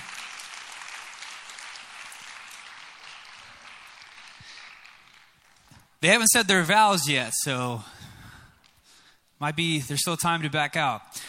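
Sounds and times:
audience clapping: 0.0 - 6.3
speech: 6.0 - 8.0, 9.4 - 11.2.

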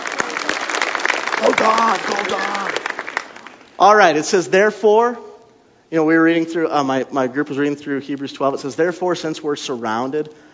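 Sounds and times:
audience hand clapping: 0.0 - 3.8
speech: 1.6 - 2.9, 3.8 - 5.3, 5.9 - 10.5.

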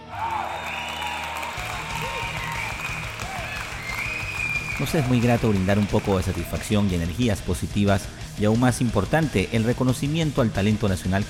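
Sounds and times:
applause: 0.0 - 6.9
speech: 4.8 - 11.2.

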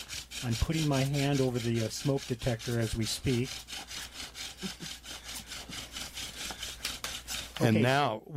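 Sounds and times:
wood rubbing hard against wood to make a friction fire: 0.0 - 8.0
speech: 0.4 - 3.9, 4.6 - 5.0, 7.6 - 8.3.

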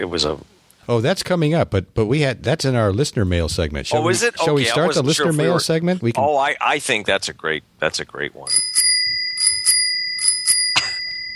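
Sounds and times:
speech: 0.0 - 8.9
bicycle-bell sound effect from a soundboard: 8.5 - 11.3.

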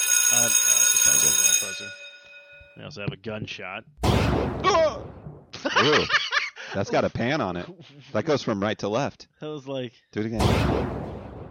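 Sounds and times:
doorbell sound effect: 0.0 - 2.8
speech: 0.3 - 2.0, 2.8 - 11.1
laughter: 5.6 - 8.1.

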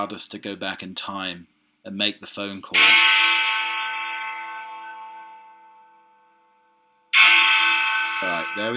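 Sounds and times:
speech: 0.0 - 3.2, 8.2 - 8.7
clock-themed bell-like ringing tone summoning sound effect: 2.8 - 8.7.

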